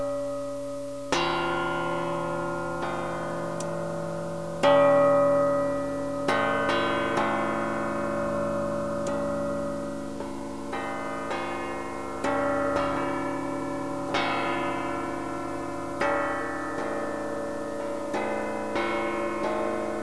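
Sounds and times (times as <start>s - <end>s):
gong: 0.0s - 20.0s.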